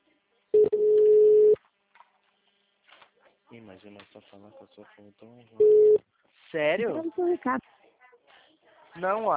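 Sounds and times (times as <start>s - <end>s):
phone call ringing tone: 0.6s - 1.6s, 5.6s - 6.0s
speech: 3.6s - 7.7s, 9.0s - 9.3s.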